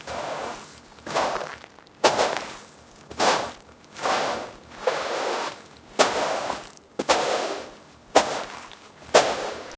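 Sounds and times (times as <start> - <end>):
footstep dragging in sand: 0.0 - 9.7.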